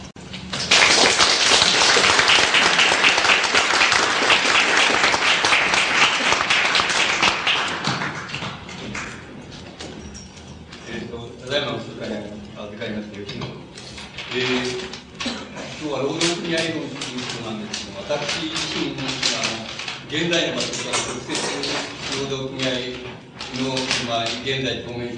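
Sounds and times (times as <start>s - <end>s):
crowd applause welcoming speaker: 0.5s - 9.3s
person speaking: 10.8s - 25.1s.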